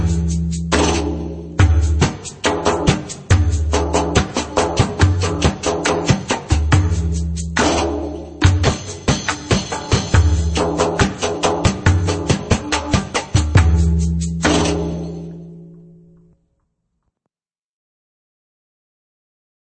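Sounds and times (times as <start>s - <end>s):
slow maqsum drum rhythm: 0.0s - 15.4s.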